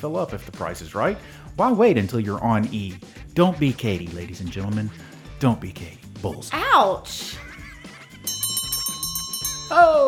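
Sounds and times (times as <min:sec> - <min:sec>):
speech: 0:00.0 - 0:07.4, 0:09.7 - 0:10.0
laughter: 0:07.1 - 0:09.2
closing bell: 0:08.3 - 0:09.8.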